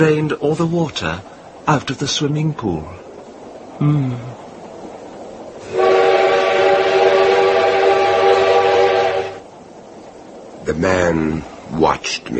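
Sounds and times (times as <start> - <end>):
speech: 0.0 - 3.0, 3.8 - 4.4, 10.6 - 12.3
train rumbling: 0.0 - 12.3
loud sustained train whistle: 5.6 - 9.4.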